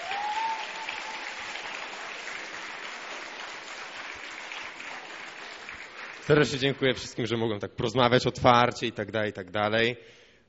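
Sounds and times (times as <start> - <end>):
crowd applauding: 0.0 - 7.2
speech: 6.3 - 10.2.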